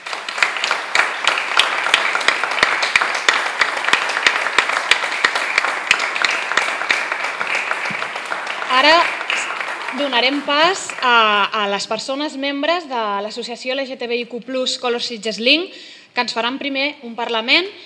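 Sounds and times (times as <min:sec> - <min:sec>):
audience applause: 0:00.0 - 0:11.6
speech: 0:08.8 - 0:09.1, 0:09.9 - 0:17.8.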